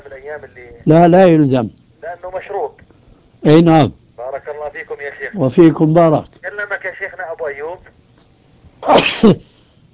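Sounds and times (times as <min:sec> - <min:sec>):
speech: 0:00.2 - 0:02.8, 0:03.4 - 0:08.0, 0:08.8 - 0:09.5
sneeze: 0:08.8 - 0:09.5.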